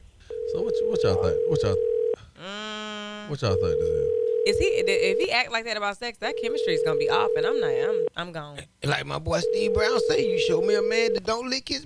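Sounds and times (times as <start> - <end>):
telephone dial tone as a call is placed: 0.3 - 2.1, 4.1 - 5.2, 6.3 - 8.1, 9.4 - 10.8
speech: 0.7 - 2.6, 3.3 - 11.8.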